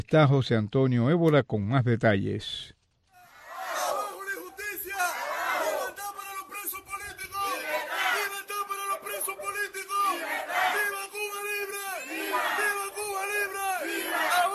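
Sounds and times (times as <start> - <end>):
speech: 0.0 - 2.8
protest crowd shouting slogans: 3.3 - 14.5.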